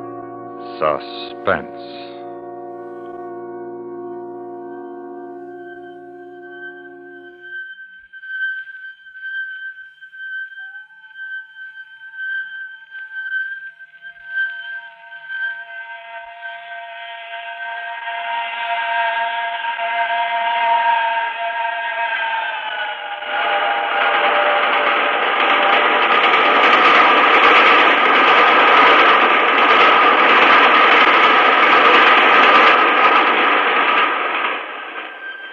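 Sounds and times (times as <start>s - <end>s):
steam train rushing past: 0.0s - 2.2s, 23.2s - 35.5s
steam train shrill multi-toned whistle: 0.0s - 9.0s, 13.9s - 35.5s
speech: 0.8s - 2.1s.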